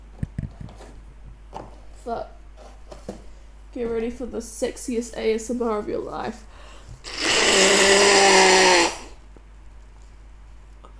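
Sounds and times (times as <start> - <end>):
speech: 2.0 - 2.4, 3.8 - 6.6
person blowing nose: 7.0 - 9.2.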